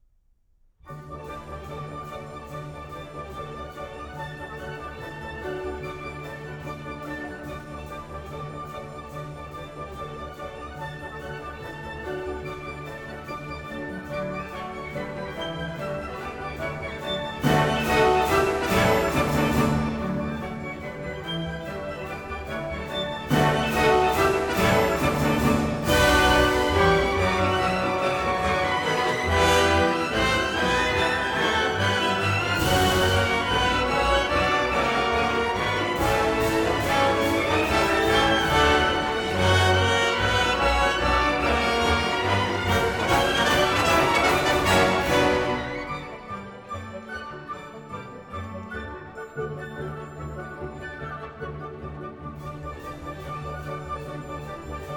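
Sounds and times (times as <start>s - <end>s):
orchestra: 0.8s - 54.9s.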